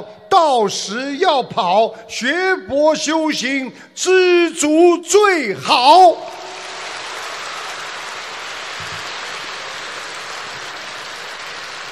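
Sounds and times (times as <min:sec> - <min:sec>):
speech: 0:00.4 - 0:06.4
audience applause: 0:06.3 - 0:11.9.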